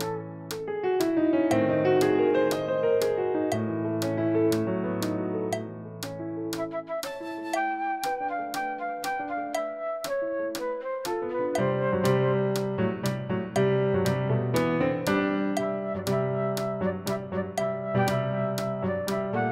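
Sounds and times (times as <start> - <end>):
fast flute backing track: 0.0 - 0.7, 6.6 - 12.8, 15.6 - 19.5
fast piano backing track: 0.0 - 19.5.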